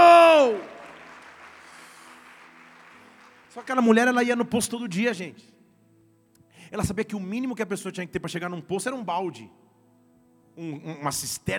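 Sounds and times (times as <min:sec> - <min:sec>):
audience applause: 0:00.0 - 0:03.9
speech: 0:03.6 - 0:05.6, 0:06.7 - 0:09.7, 0:10.6 - 0:11.5.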